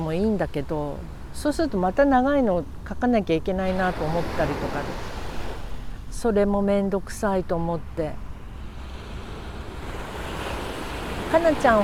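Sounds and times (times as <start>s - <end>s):
speech: 0.1s - 5.1s, 6.2s - 8.3s, 11.3s - 11.8s
ocean waves breaking on a beach at Shonan: 3.6s - 6.1s, 8.3s - 11.8s.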